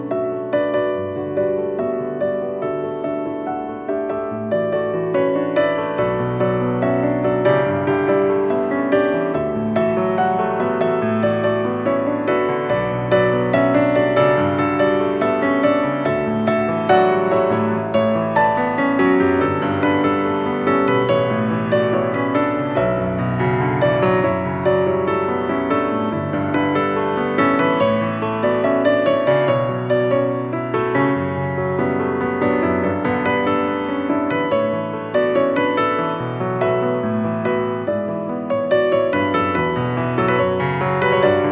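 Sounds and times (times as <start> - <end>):
piano ballad: 0.0 - 41.5.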